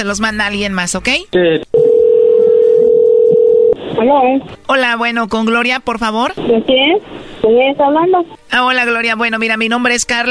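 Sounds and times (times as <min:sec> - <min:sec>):
speech: 0:00.0 - 0:01.8, 0:04.0 - 0:10.2
telephone dialing tones before a call: 0:01.8 - 0:03.8.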